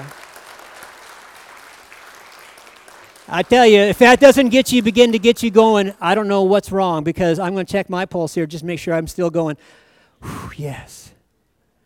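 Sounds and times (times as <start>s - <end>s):
church congregation clapping after an Easter sermon: 0.0s - 6.6s
speech: 3.3s - 11.2s.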